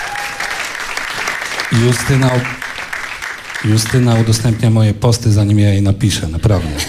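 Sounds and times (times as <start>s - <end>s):
audience applause: 0.0s - 4.9s
speech: 1.8s - 2.6s, 3.6s - 6.8s.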